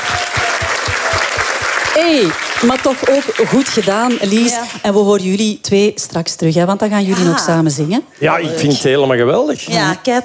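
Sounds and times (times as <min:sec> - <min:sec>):
audience applause: 0:00.0 - 0:04.8
speech: 0:02.0 - 0:10.2.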